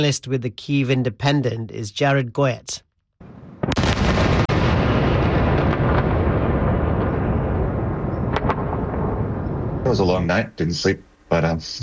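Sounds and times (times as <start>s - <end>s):
speech: 0.0s - 3.3s, 9.9s - 11.8s
ballistic missile explosions: 3.2s - 10.0s.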